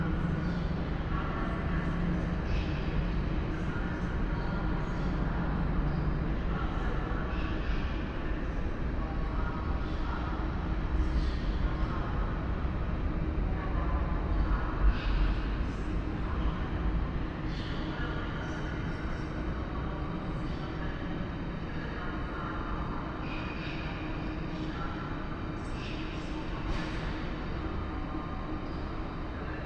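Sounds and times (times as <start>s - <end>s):
train station hall ambience: 0.0s - 29.6s.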